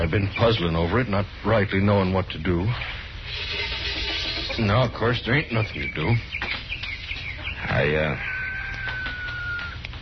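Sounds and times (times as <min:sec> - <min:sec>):
speech: 0:00.0 - 0:03.7, 0:04.6 - 0:06.5, 0:07.7 - 0:08.3
hens clucking in a farmyard: 0:03.3 - 0:09.9.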